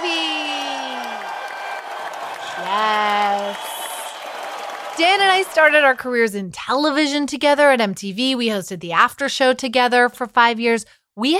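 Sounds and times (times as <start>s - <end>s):
person whooping or cheering: 0.0s - 4.3s
clapping: 0.0s - 5.8s
speech: 2.6s - 3.6s, 5.0s - 11.3s.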